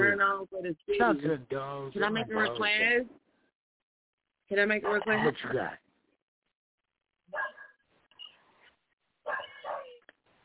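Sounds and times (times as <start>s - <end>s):
speech: 0.4s - 3.2s, 4.5s - 5.8s
dog barking: 4.8s - 5.2s, 7.3s - 7.8s, 9.2s - 10.0s.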